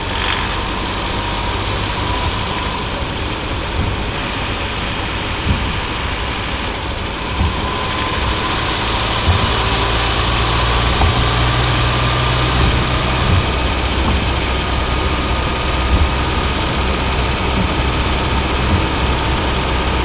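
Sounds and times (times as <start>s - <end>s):
strange metallic ticking noise under load from Mitsubishi Lancer Sportback: 0.2s - 20.0s.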